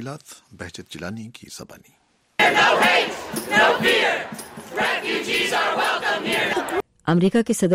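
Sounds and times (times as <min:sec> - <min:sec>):
speech: 0:00.0 - 0:07.7
protest crowd chanting slogans: 0:02.4 - 0:06.8.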